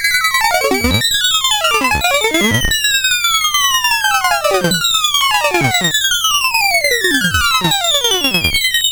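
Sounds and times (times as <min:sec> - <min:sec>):
descending glop on CSG8580R5: 0:00.2 - 0:08.7.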